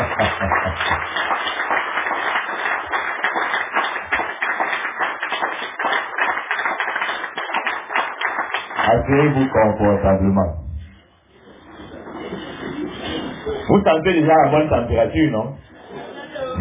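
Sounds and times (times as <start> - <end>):
laughter: 0.0 - 1.3, 11.5 - 13.7, 15.7 - 16.5
audience applauding: 0.0 - 10.0
speech: 9.1 - 10.6, 13.8 - 15.6.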